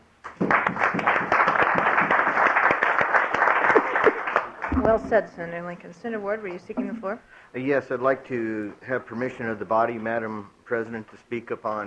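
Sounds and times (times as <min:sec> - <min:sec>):
round of applause: 0:00.2 - 0:05.0
speech: 0:05.0 - 0:11.8.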